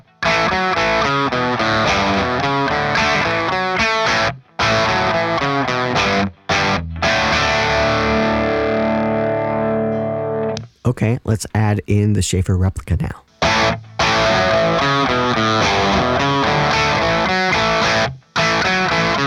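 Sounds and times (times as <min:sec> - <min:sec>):
distorted electric guitar chords from an SG with Mercury humbuckers through a Marshall: 0:00.0 - 0:10.7, 0:13.3 - 0:19.2
speech: 0:10.9 - 0:13.3.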